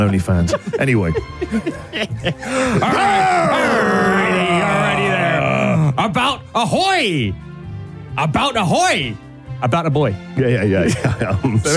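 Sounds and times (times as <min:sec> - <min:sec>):
speech: 0:00.0 - 0:04.5, 0:06.0 - 0:07.5, 0:08.2 - 0:11.7
laughter: 0:00.0 - 0:05.8, 0:10.8 - 0:11.7
human voice imitating a guttural growl: 0:02.6 - 0:06.0.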